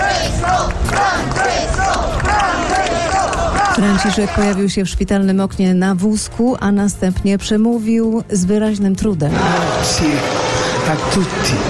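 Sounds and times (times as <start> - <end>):
crowd of faithful chanting calling the pope: 0.0 - 4.6, 9.3 - 11.6
speech: 3.8 - 11.6.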